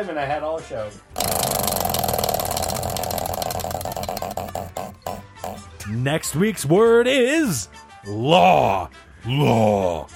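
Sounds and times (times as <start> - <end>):
speech: 0.0 - 1.8, 5.9 - 10.1
prize wheel spinning during a show's word game: 1.2 - 5.8.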